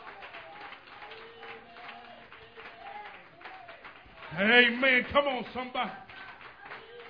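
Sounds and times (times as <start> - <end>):
audience clapping hands: 0.0 - 7.0
speech: 4.3 - 6.1.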